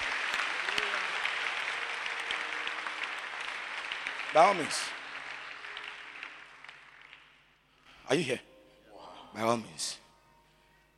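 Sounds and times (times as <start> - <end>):
audience clapping: 0.0 - 7.8
speech: 4.3 - 5.0, 8.1 - 8.5, 9.3 - 10.0.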